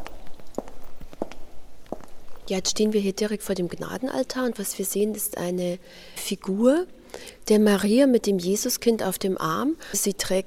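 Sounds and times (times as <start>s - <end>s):
footsteps walking toward the altar of a church: 0.0s - 2.5s
speech: 2.5s - 10.4s.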